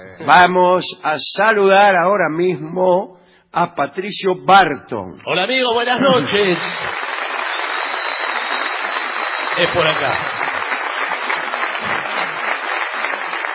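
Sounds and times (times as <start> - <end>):
speech: 0.0 - 7.1, 9.6 - 10.4
audience applause and ovation: 6.1 - 13.5.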